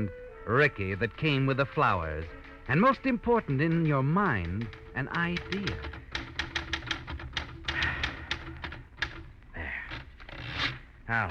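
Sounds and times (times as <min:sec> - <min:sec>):
speech: 0:00.0 - 0:06.0, 0:11.1 - 0:11.2
keys clacking on a battered desk typewriter: 0:02.7 - 0:09.3.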